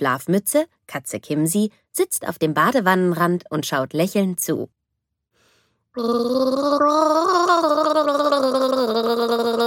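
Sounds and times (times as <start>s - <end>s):
speech: 0.0s - 4.8s, 6.0s - 9.6s
child gargling after brushing teeth at a washbasin: 6.0s - 9.6s.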